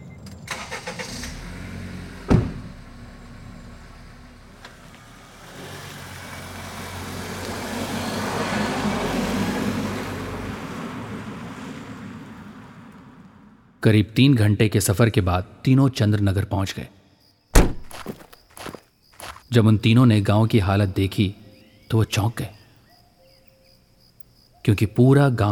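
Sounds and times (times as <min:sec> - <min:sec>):
car engine starting and driving off: 0:00.0 - 0:13.8
speech: 0:13.8 - 0:17.0, 0:19.5 - 0:22.6, 0:24.7 - 0:25.4.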